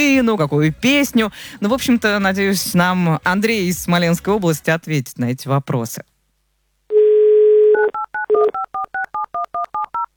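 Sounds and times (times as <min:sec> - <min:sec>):
speech: 0:00.0 - 0:06.1
telephone dial tone: 0:06.9 - 0:08.6.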